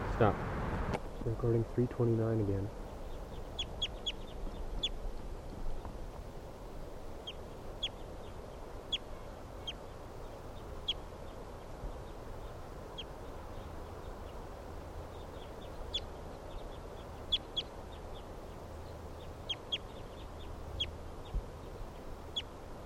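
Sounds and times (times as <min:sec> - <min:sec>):
speech: 0:00.2 - 0:00.5, 0:01.2 - 0:02.8
mother birds calling: 0:01.0 - 0:05.9, 0:07.1 - 0:22.8.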